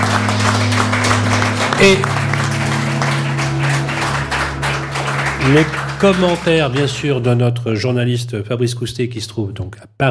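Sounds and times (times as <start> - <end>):
applause: 0.0 - 7.6
speech: 1.8 - 2.2, 5.5 - 10.0.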